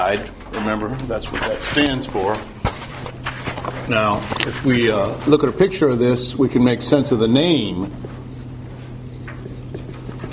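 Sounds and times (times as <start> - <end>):
speech: 0.0 - 2.6, 3.9 - 8.1
writing on a board: 7.8 - 10.3.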